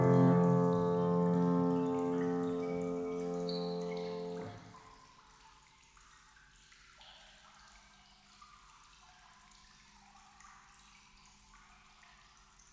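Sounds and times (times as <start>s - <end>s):
piano improvisation: 0.0s - 4.7s.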